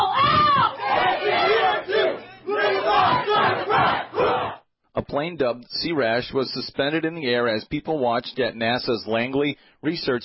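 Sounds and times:
police officers chanting at a vigil: 0.2s - 4.6s
speech: 5.2s - 10.2s.

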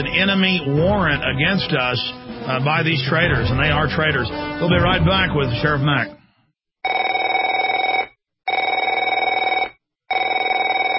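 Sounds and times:
speech: 0.0s - 6.2s
telephone ringing with electronic trill: 6.8s - 10.9s.

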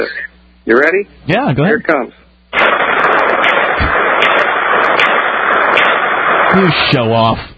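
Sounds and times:
crackling band-limited phone noise: 0.0s - 0.5s, 1.6s - 7.3s
speech: 0.0s - 2.8s, 6.6s - 7.5s
22 Jennings pistol shots heard over a telephone line: 2.5s - 7.3s.

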